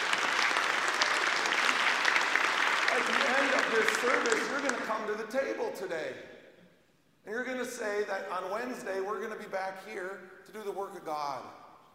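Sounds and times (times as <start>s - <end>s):
church congregation applauding during a service: 0.0s - 5.6s
speech: 3.7s - 6.3s, 7.3s - 11.6s.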